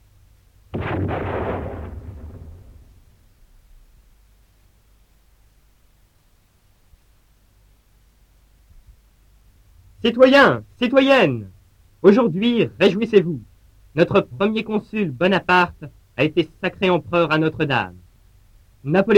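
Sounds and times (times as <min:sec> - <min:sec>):
French firing squad volley in a Napoleonic-era radio drama: 0:00.7 - 0:03.0
speech: 0:10.0 - 0:18.0, 0:18.8 - 0:19.1.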